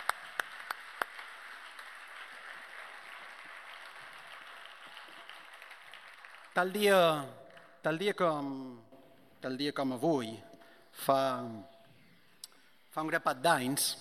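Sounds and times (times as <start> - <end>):
audience applause: 0.0 - 6.8
speech: 6.6 - 11.7, 13.0 - 13.9.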